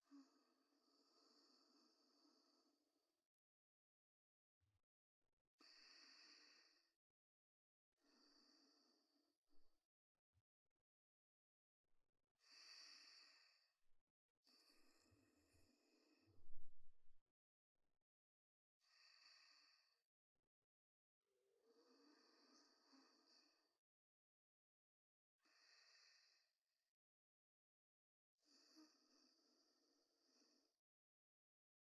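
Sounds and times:
person breathing in sleep: 0.1 - 2.8, 5.6 - 6.9, 8.0 - 9.2, 12.4 - 13.7, 14.5 - 16.7, 18.8 - 20.0, 21.7 - 23.8, 25.4 - 26.5, 28.4 - 30.8.

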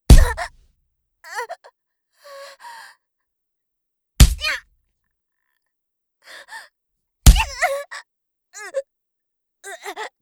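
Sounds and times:
punch to the stomach: 0.1 - 0.5, 4.2 - 4.6, 7.3 - 7.6.

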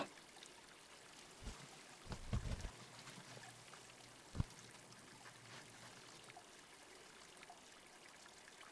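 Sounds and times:
scalp and ear massage at a hot spring: 0.9 - 6.2.

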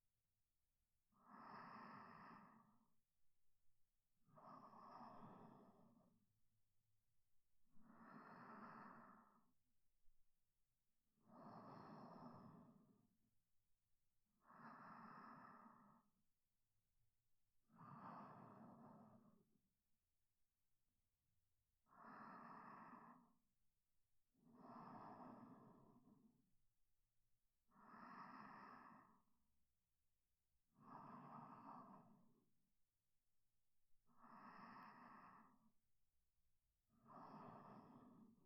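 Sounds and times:
sleep breathing: 1.2 - 2.9, 4.4 - 6.1, 7.8 - 9.5, 11.3 - 13.0, 14.4 - 16.1, 17.8 - 19.5, 21.9 - 23.3, 24.5 - 26.3, 27.7 - 29.4, 30.7 - 32.4, 34.2 - 35.8, 37.0 - 38.4.

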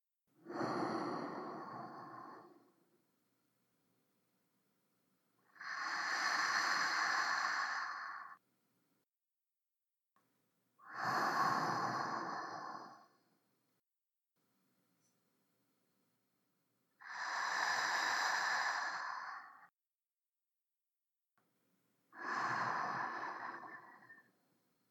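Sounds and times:
sleeping breath: 0.4 - 2.8, 5.4 - 8.4, 10.8 - 13.3, 17.0 - 19.7, 22.2 - 24.4.

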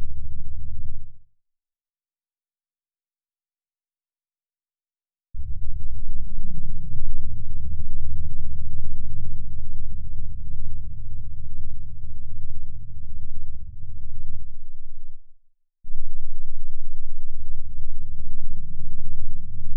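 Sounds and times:
10 Hz low-frequency tone: 0.0 - 1.2, 5.4 - 15.3, 15.9 - 19.7.

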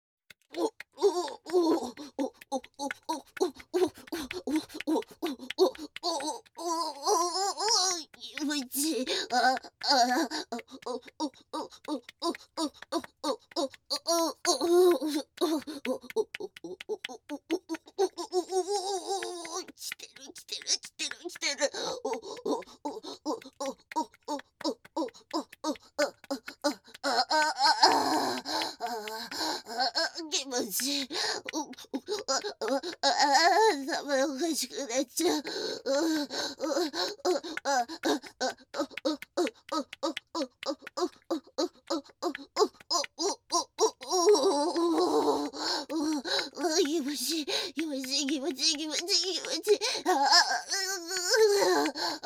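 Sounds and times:
person moaning: 0.5 - 52.2.

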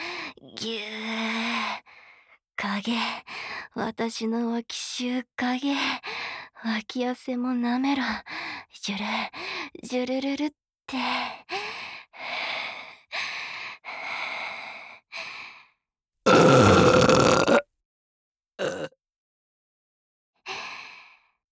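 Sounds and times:
speech: 0.5 - 1.0, 2.8 - 11.4
loud burp: 16.3 - 17.6, 18.6 - 19.0.

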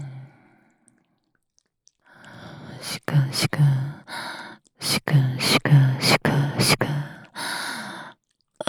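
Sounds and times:
whispering: 2.6 - 4.1, 4.8 - 7.3.

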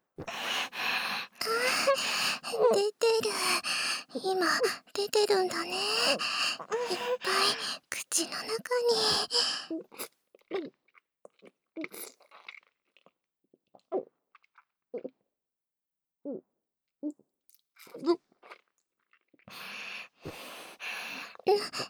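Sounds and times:
breathy hiss: 0.3 - 9.7, 19.6 - 21.8
throat gulping swallows while drinking: 0.3 - 9.7, 19.5 - 21.8
speech: 4.2 - 9.9.

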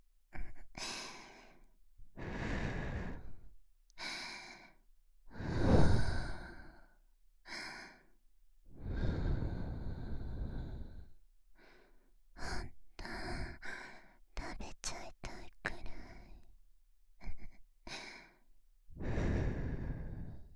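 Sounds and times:
breathing: 0.8 - 8.2, 8.8 - 14.2, 17.3 - 18.4, 19.0 - 20.5
whispering: 14.4 - 16.4.

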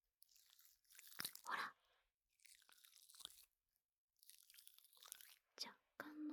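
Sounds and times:
gel fizzing and bubbling: 0.3 - 1.6, 2.4 - 3.6, 4.2 - 5.6.

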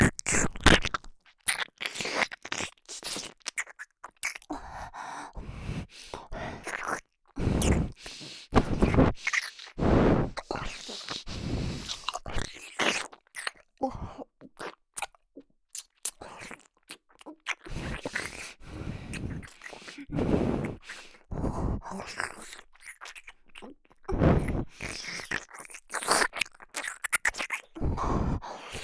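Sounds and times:
ear licking sounds: 0.1 - 13.7, 14.3 - 28.8
nose breathing: 4.5 - 12.9, 17.6 - 22.6, 24.1 - 25.3, 27.8 - 28.8.

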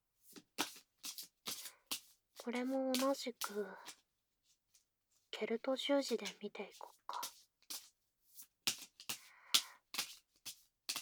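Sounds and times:
tarot cards being shuffled: 0.3 - 4.0, 6.1 - 11.0
speech: 2.4 - 4.0, 5.4 - 7.0.

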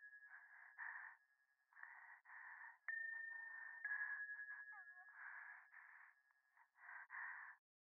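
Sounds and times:
breathing close to the left ear on a phone at a shrine: 0.5 - 4.2, 5.1 - 7.6.

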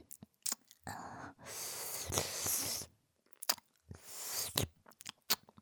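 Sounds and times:
ear licking: 0.1 - 0.8, 1.6 - 5.5
kissing: 0.4 - 0.7, 3.4 - 5.5.

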